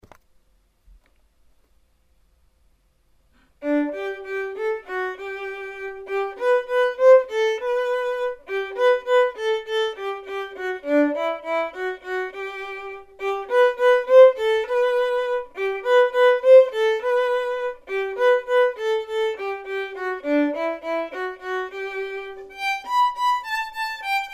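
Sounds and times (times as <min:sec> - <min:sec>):
violin performance: 0:03.6 - 0:24.3.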